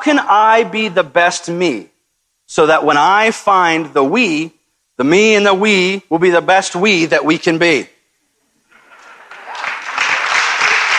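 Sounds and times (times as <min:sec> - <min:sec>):
speech: 0:00.0 - 0:01.9, 0:02.5 - 0:07.9
audience clapping: 0:08.8 - 0:10.9.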